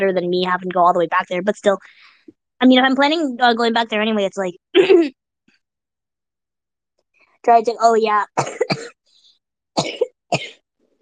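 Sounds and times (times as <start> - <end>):
speech: 0.0 - 5.2, 7.4 - 9.0
dry unproductive cough: 8.4 - 9.1, 9.8 - 10.6.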